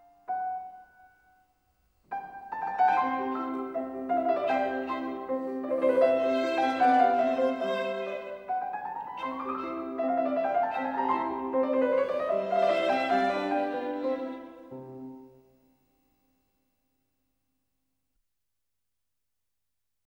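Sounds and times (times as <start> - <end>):
violin sonata in C major allegretto: 2.1 - 15.4.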